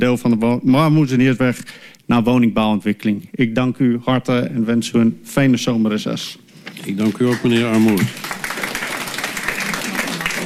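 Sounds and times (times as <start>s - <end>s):
speech: 0.0s - 8.4s
audience clapping in public gallery of a council meeting: 7.0s - 10.4s.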